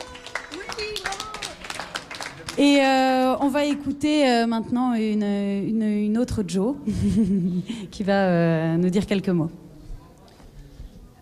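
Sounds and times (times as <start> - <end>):
audience applause: 0.0 - 2.7
speech: 2.6 - 9.6.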